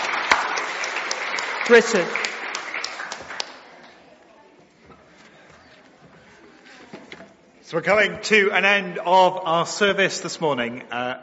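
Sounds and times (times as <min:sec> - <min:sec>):
audience applauding children: 0:00.0 - 0:04.1
speech: 0:01.7 - 0:02.3, 0:07.7 - 0:11.2.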